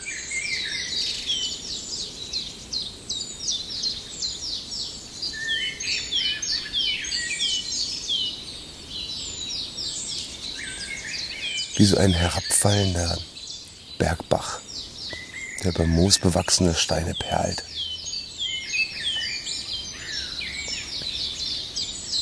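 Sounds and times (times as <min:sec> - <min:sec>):
European robin singing: 0:05.3 - 0:22.1
speech: 0:11.8 - 0:13.3, 0:15.6 - 0:17.7.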